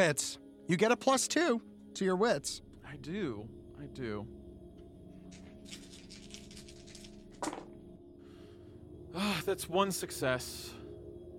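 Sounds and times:
speech: 0:00.0 - 0:04.4, 0:05.3 - 0:05.8, 0:09.2 - 0:10.8
low steady hum: 0:02.4 - 0:11.3
dice rattling and landing: 0:05.4 - 0:07.8.

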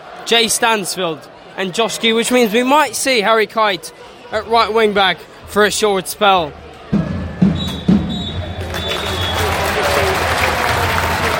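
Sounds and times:
speech: 0:00.2 - 0:06.7
crowd applause and cheering: 0:06.6 - 0:11.3
referee's full-time whistle blasts: 0:07.4 - 0:09.6.

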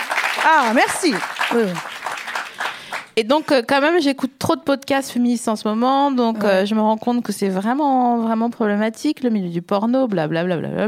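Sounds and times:
audience applause: 0:00.0 - 0:03.2
speech: 0:00.4 - 0:02.0, 0:03.2 - 0:10.8.

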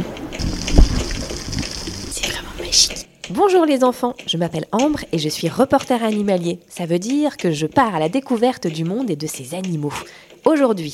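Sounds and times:
gurgling water as recorder plunges underwater: 0:00.0 - 0:03.0
heavy low thump: 0:00.4 - 0:02.1
speech: 0:02.8 - 0:10.9.

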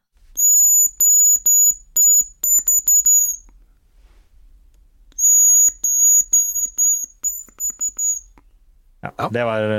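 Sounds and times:
imitated hazel grouse call: 0:00.4 - 0:03.5, 0:05.2 - 0:08.4
speech: 0:09.2 - 0:09.7.

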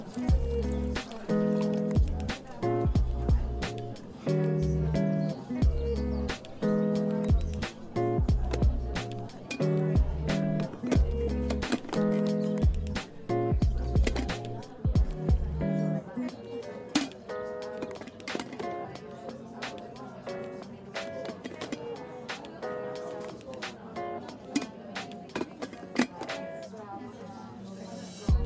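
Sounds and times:
steady overlapping chatter in a coffee shop: 0:00.0 - 0:28.4.

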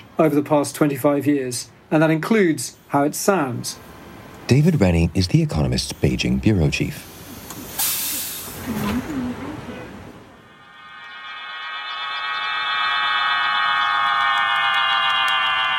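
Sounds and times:
speech: 0:00.2 - 0:07.2
broad hissing noise: 0:02.7 - 0:09.4, 0:10.4 - 0:15.7.

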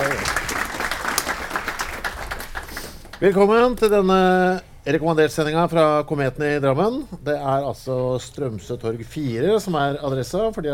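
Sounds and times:
audience applause: 0:00.0 - 0:03.2
speech: 0:03.2 - 0:10.7.

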